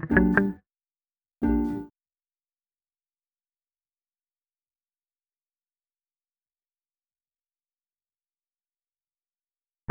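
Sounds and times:
melody: 0.1 - 0.5, 1.5 - 1.9.

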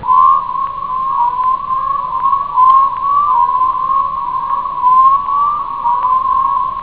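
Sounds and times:
chirping: 0.0 - 6.8.

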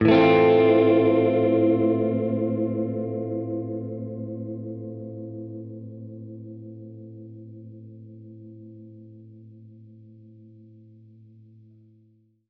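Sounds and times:
Gretsch guitar A minor flat six chord: 0.0 - 8.1.

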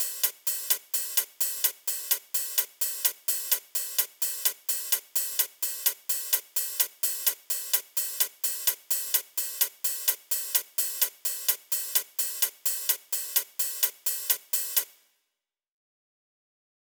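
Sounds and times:
hi-hat pattern at 128 BPM: 0.0 - 15.0.

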